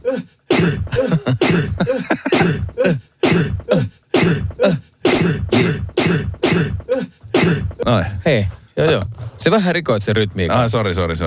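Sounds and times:
recorded human sneeze played back: 0:00.0 - 0:07.8
speech: 0:09.4 - 0:11.2.

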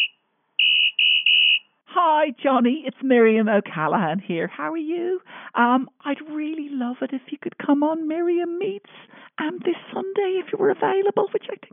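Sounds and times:
voicemail whistle tone: 0:00.0 - 0:01.7
speech: 0:02.0 - 0:11.7.

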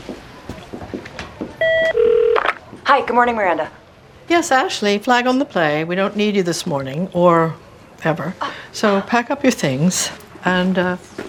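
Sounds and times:
electronic phone tones: 0:01.6 - 0:02.5
speech: 0:02.9 - 0:11.2.

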